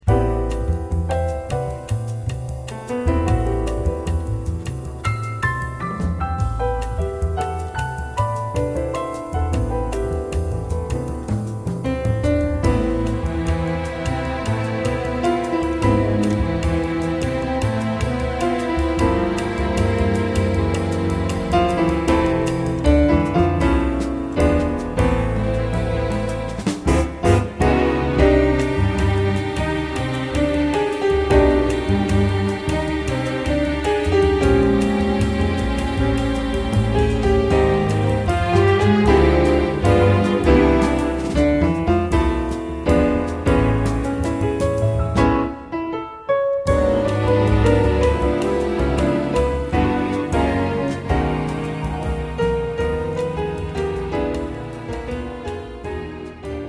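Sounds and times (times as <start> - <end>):
passionate strings playing: 0.0 - 45.8, 46.7 - 56.6.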